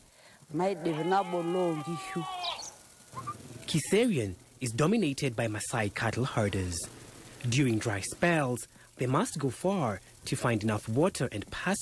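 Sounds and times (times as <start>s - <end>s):
speech: 0.5s - 2.6s, 3.7s - 11.8s
sheep bleating: 0.5s - 4.0s.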